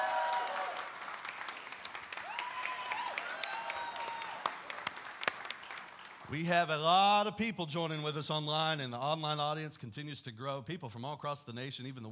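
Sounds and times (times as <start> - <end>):
church congregation applauding: 0.0 - 6.8
speech: 6.3 - 12.1.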